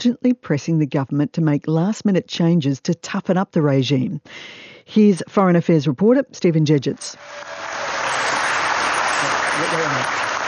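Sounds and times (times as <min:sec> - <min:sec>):
speech: 0:00.0 - 0:07.9, 0:09.6 - 0:10.3
applause: 0:07.2 - 0:10.4.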